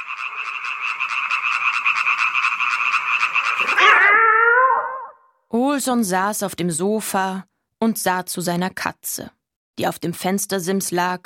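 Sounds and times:
frogs croaking: 0:00.0 - 0:05.2
speech: 0:05.7 - 0:11.2.

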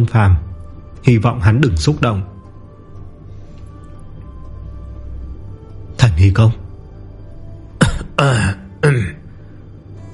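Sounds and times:
speech: 0:00.0 - 0:02.3, 0:06.2 - 0:06.6, 0:08.2 - 0:09.1
elderly white-haired man coughing with rough hacking dry coughs: 0:07.8 - 0:09.2.

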